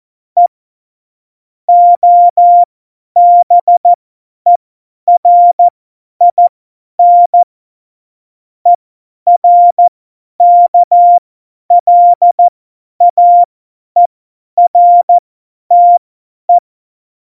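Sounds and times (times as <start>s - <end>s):
CW morse code beeps: 1.7s - 3.9s, 4.5s - 7.5s, 9.3s - 16.6s.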